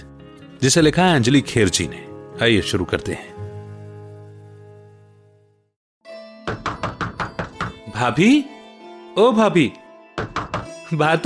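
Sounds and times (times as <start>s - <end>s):
speech: 0.6s - 3.4s, 8.0s - 8.6s, 9.2s - 9.8s, 10.9s - 11.2s
sharp knocks on a door: 6.4s - 7.8s, 10.2s - 10.7s.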